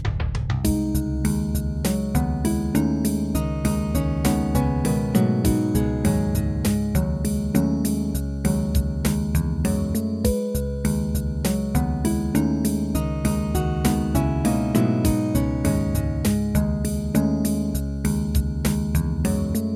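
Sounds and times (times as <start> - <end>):
MIDI harp: 0.7 - 19.7.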